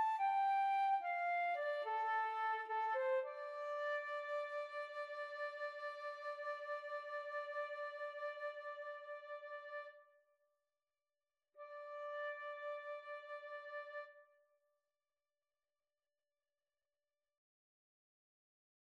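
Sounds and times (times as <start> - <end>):
flute duet: 0.0 - 10.0, 11.6 - 14.3.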